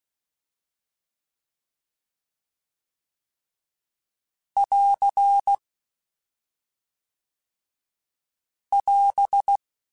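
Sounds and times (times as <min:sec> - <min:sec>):
Morse code Q calls in CW code groups: 0:04.6 - 0:05.6, 0:08.8 - 0:09.6.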